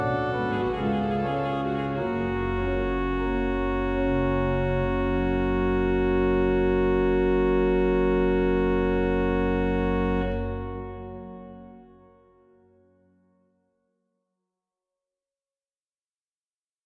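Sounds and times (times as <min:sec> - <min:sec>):
organ music: 0:00.0 - 0:12.7.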